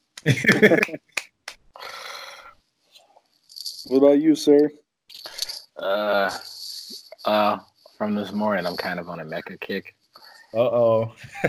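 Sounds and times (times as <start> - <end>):
hand clapping: 0.1 - 2.2
laughter: 0.2 - 1.2, 11.1 - 11.4
speech: 0.2 - 1.2, 3.9 - 4.8, 5.8 - 6.5, 7.2 - 11.4.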